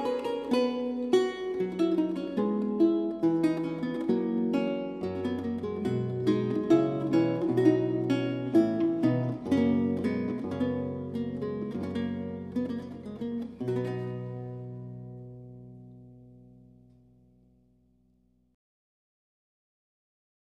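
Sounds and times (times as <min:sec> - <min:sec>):
recercar on renaissance lute: 0:00.0 - 0:15.9.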